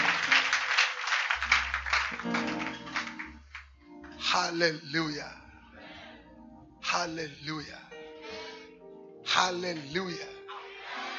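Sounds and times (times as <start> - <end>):
audience clapping hands: 0.0 - 4.2
speech: 4.4 - 5.4, 7.0 - 7.9, 9.4 - 10.4.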